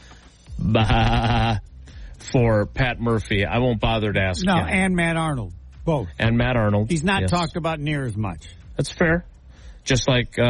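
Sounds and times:
sheep bleating: 0.6 - 1.7
speech: 0.7 - 1.6, 2.3 - 10.4.

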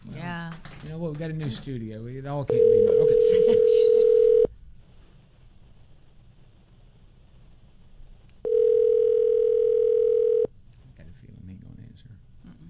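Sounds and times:
speech: 0.5 - 4.4
telephone dial tone: 2.5 - 4.5, 8.4 - 10.5.

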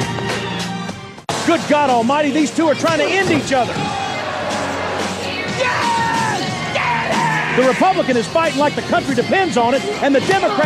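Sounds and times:
crowd yelling and cheering: 1.3 - 8.6
speech: 1.5 - 4.0, 7.6 - 10.6.

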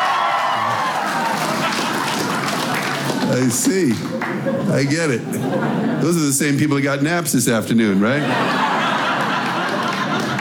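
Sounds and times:
crowd applause: 0.0 - 4.5, 8.5 - 10.3
laughter: 0.6 - 6.4, 8.0 - 10.3
speech: 3.3 - 8.7.

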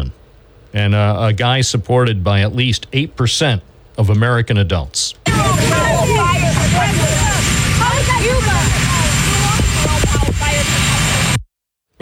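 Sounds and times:
speech: 0.0 - 7.2
Marine One Sikorsky helicopter rotor and engine roar: 5.2 - 11.4.

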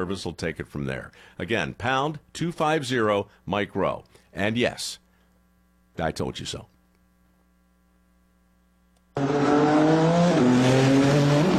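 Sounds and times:
speech: 0.0 - 5.0, 6.0 - 6.7
race cars roaring along city streets: 9.2 - 11.5.

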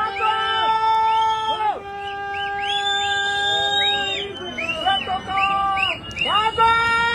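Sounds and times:
people yelling as a flood warning: 0.0 - 7.1.

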